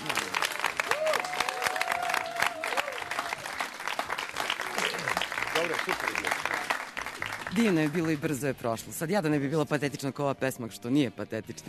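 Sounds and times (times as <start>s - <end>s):
concert audience applause: 0.0s - 8.5s
speech: 5.7s - 6.8s, 7.5s - 11.6s.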